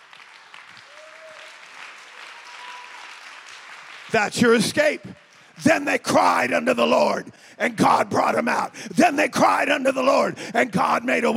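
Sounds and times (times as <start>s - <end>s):
audience clapping hands: 0.0s - 5.9s
speech: 4.1s - 11.3s.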